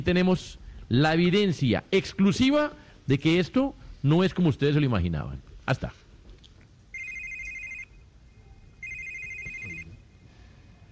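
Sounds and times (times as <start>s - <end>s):
speech: 0.0s - 6.0s
faint noise: 0.0s - 10.8s
telephone ringing with an electronic warble: 6.9s - 8.0s, 8.8s - 10.0s.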